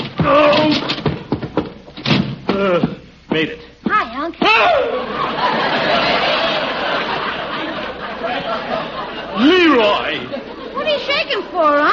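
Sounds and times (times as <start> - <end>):
stuck door being forced open: 0.0 - 3.0
speech: 2.6 - 5.6, 11.1 - 11.9
laughter: 4.7 - 11.5.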